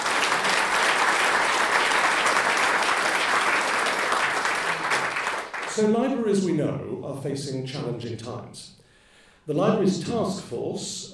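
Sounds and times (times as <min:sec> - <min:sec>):
audience applause: 0:00.0 - 0:05.7
speech: 0:05.8 - 0:08.8, 0:09.5 - 0:11.1.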